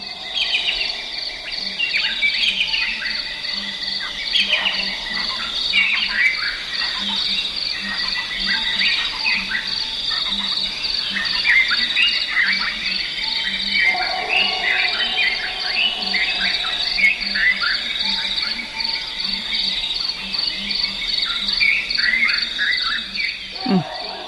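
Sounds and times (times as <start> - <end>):
owlets calling: 0.0 - 3.5, 13.8 - 19.7
insects chorus: 0.0 - 24.2
nightjars calling: 0.0 - 24.2.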